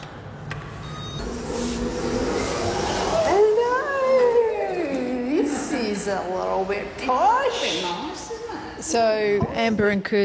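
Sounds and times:
elevator running in an apartment building: 0.0 - 7.5
speech: 6.0 - 10.2.

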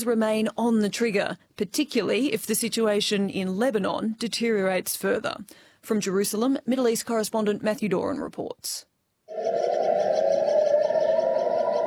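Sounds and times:
speech: 0.0 - 10.1
air raid warning sirens wailing: 9.3 - 11.8.

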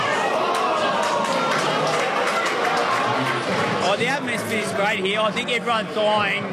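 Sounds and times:
pub crowd yelling: 0.0 - 5.2
hum of the pub: 0.0 - 6.5
applause in a pub: 0.1 - 4.4
speech: 4.0 - 6.5.

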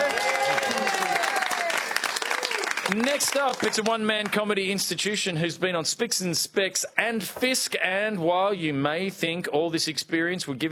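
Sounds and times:
comedy audience applause: 0.0 - 4.5
speech: 2.9 - 10.7.

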